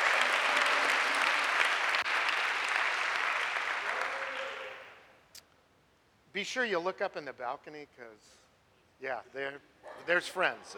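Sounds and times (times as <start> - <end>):
audience applause: 0.0 - 5.0
speech: 6.4 - 8.4, 9.0 - 10.7.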